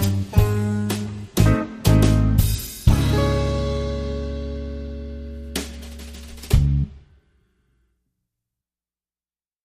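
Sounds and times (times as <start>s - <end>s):
easy swing light jazz guitar: 0.0s - 6.9s.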